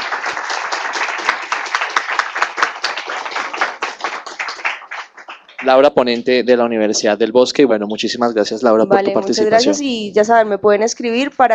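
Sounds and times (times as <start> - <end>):
audience applause after a talk: 0.0 - 6.4
speech: 5.6 - 11.5.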